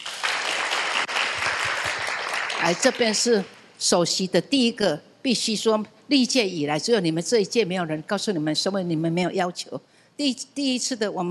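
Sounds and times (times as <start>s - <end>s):
audience applause at a Buddhist temple gathering: 0.0s - 3.0s
speech: 2.6s - 11.3s.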